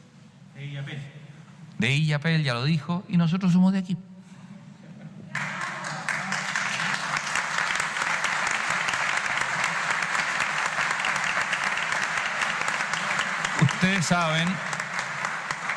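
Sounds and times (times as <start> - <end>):
speech: 0.8 - 1.2, 1.8 - 4.1, 14.0 - 14.8
audience applause: 5.3 - 15.7.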